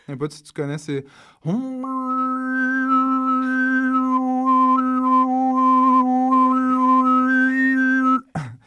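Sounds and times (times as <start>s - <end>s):
speech: 0.1s - 3.6s
Mongolian overtone throat singing with low drone and whistling overtone melody: 1.4s - 8.6s.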